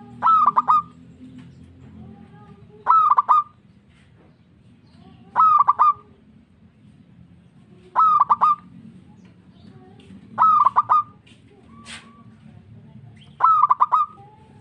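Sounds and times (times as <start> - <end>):
local-type zebra dove cooing: 0.0 - 0.9, 2.8 - 3.6, 5.2 - 6.2, 7.9 - 8.7, 10.4 - 12.3, 13.4 - 14.5.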